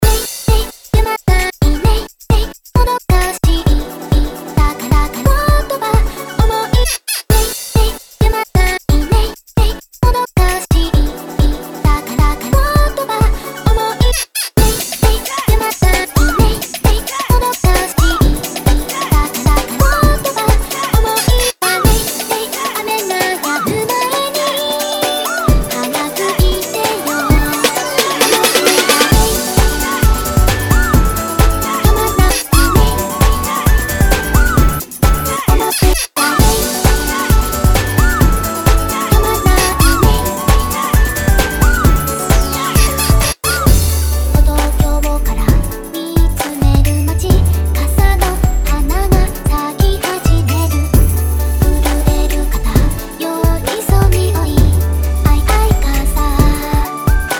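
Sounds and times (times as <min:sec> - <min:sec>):
Jersey club bootleg beat: 0:00.0 - 0:57.3.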